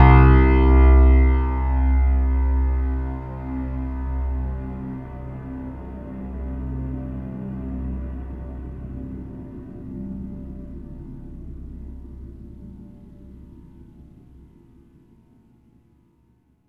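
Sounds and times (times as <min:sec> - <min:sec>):
piano: 0:00.0 - 0:14.9.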